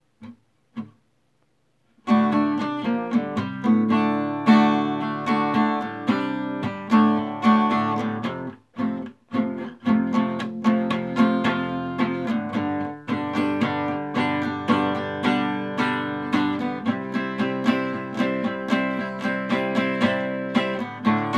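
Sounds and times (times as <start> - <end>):
acoustic music: 2.0 - 21.3.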